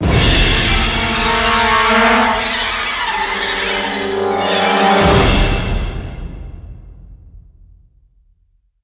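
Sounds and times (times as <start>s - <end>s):
large string section: 0.0s - 6.7s.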